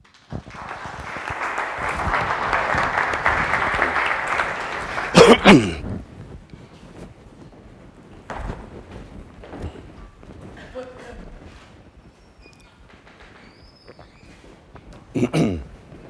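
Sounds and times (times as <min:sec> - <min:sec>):
audience clapping: 0:00.0 - 0:05.9
loud thump and rustle: 0:08.2 - 0:10.6.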